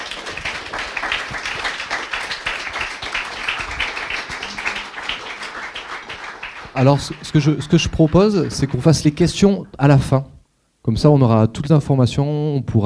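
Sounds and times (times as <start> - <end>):
audience applause: 0.0 - 9.6
speech: 6.8 - 12.8.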